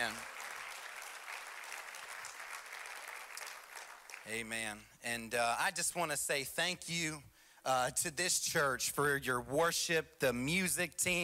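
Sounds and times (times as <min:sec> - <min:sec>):
audience applause: 0:00.0 - 0:04.3
speech: 0:04.2 - 0:11.2.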